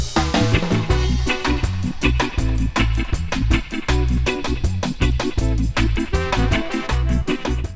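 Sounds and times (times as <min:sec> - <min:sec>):
dub horns: 0:00.1 - 0:07.7.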